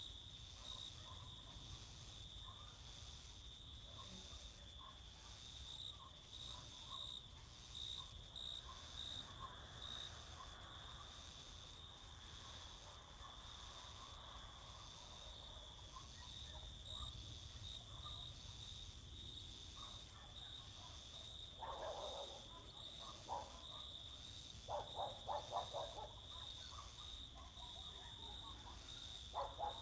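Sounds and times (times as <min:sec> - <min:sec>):
crickets singing in summer fields at night: 0:00.0 - 0:29.8
dogs barking all around at night: 0:03.9 - 0:05.4, 0:08.0 - 0:11.2, 0:12.3 - 0:17.2, 0:17.8 - 0:18.3, 0:19.7 - 0:29.8.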